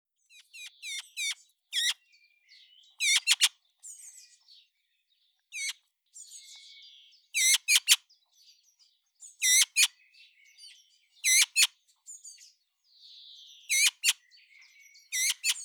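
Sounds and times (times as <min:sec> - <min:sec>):
Eurasian magpie Pica pica harsh ringing calls: 0:03.0 - 0:03.5, 0:05.6 - 0:05.8, 0:07.4 - 0:08.0, 0:09.4 - 0:09.9, 0:11.2 - 0:11.7, 0:13.7 - 0:14.2, 0:15.1 - 0:15.6.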